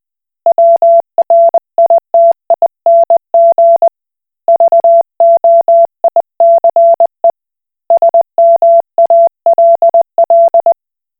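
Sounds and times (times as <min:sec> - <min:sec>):
Koch Morse code beeps: 0:00.5 - 0:03.9, 0:04.5 - 0:07.2, 0:07.9 - 0:10.7.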